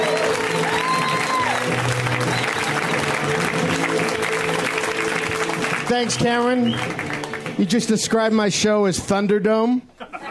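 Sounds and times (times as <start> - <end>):
audience applause at a comedy show: 0.0 - 8.2
speech: 5.9 - 9.9
laughter: 9.9 - 10.2.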